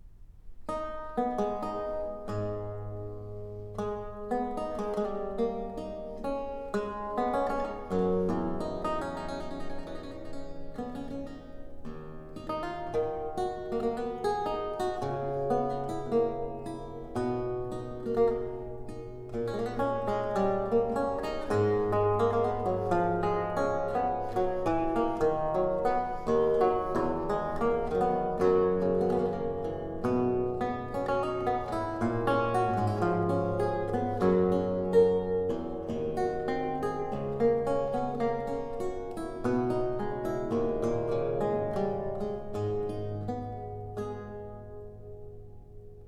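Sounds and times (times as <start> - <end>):
lute music prelude: 0.7 - 46.0.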